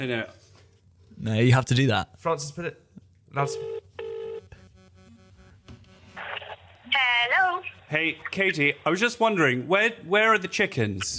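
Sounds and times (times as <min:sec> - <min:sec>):
speech: 0:00.0 - 0:00.4, 0:01.2 - 0:03.8, 0:07.0 - 0:11.1
steady electronic phone dial tone: 0:03.5 - 0:06.6.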